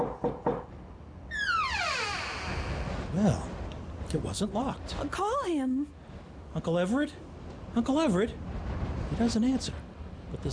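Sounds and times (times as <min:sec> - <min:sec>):
knocks on a bedroom door: 0:00.0 - 0:00.7
sustained high tone sliding downward in pitch: 0:01.3 - 0:03.0
speech: 0:03.2 - 0:03.5, 0:04.1 - 0:08.5, 0:09.2 - 0:09.8, 0:10.4 - 0:10.5.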